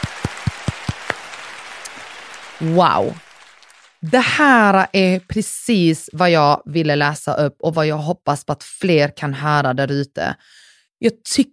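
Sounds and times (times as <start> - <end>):
person clapping hands: 0.0 - 5.4
speech: 2.6 - 3.2, 4.0 - 11.5.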